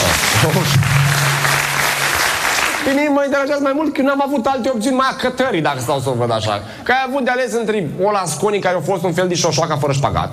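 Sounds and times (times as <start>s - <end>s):
audience applause at a Romanian gathering: 0.0s - 3.1s
speech: 2.9s - 10.3s.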